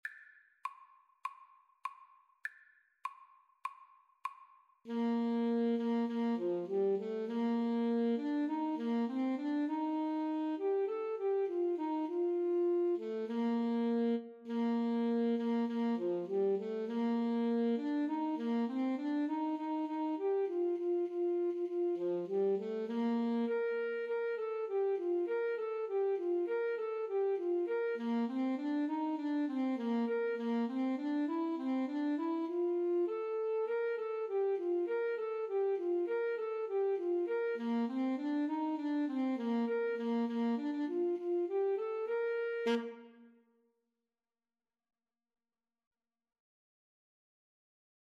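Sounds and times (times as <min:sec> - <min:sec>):
saxophone: 0:04.8 - 0:43.4
clarinet: 0:04.9 - 0:43.4.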